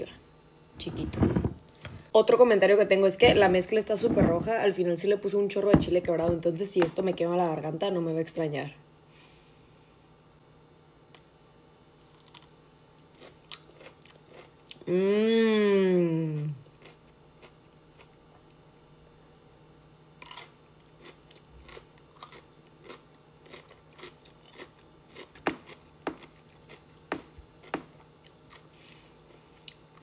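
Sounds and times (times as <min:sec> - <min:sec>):
speech: 0:00.8 - 0:01.4, 0:02.1 - 0:08.8, 0:14.9 - 0:15.4
chewing crunchy food while taste-testing: 0:12.0 - 0:14.9, 0:16.6 - 0:30.0
voice humming: 0:14.8 - 0:16.6.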